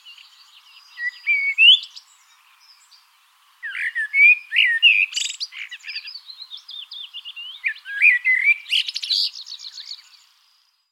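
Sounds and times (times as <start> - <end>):
common blackbird Turdus merula singing: 0.0 - 10.6.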